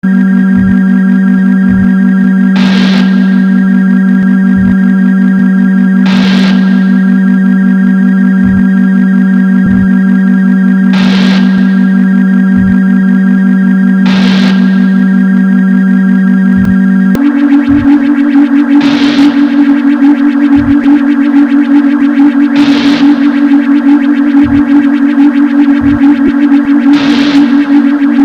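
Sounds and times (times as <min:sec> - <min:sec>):
sine wave tone: 0:00.0 - 0:28.2.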